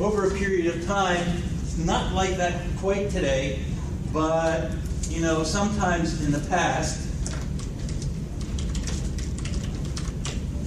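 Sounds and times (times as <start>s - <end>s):
speech: 0.0s - 7.1s
typing on a computer keyboard: 7.2s - 10.4s.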